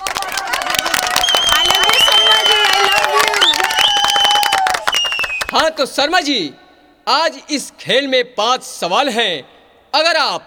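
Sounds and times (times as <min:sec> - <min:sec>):
audience applause: 0:00.0 - 0:05.5
speech: 0:05.8 - 0:10.4.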